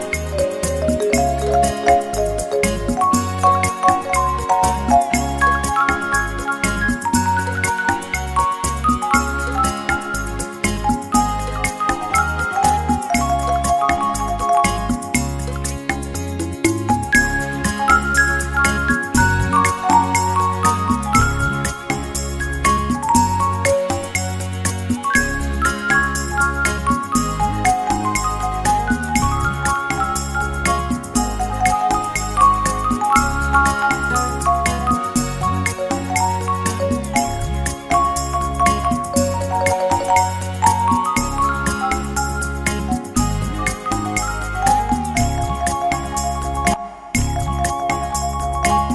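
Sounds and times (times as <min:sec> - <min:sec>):
beguine dance music: 0:00.0 - 0:48.9.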